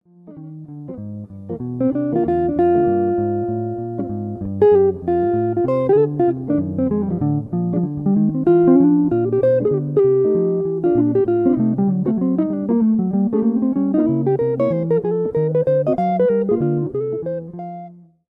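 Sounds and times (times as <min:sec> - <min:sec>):
blues music: 0:00.0 - 0:18.2.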